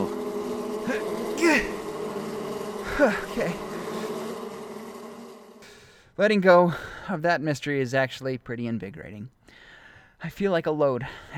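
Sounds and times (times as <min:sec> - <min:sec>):
swarm of bees buzzing: 0:00.0 - 0:05.7
speech: 0:03.0 - 0:03.6, 0:06.2 - 0:09.4, 0:10.2 - 0:11.3.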